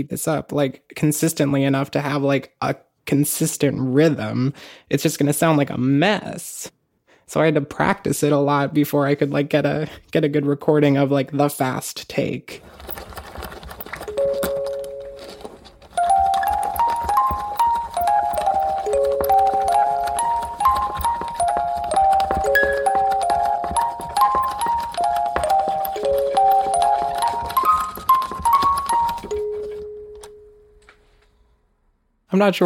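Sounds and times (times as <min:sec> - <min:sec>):
speech: 0:00.0 - 0:13.2, 0:32.4 - 0:32.6
music box melody: 0:14.1 - 0:30.9.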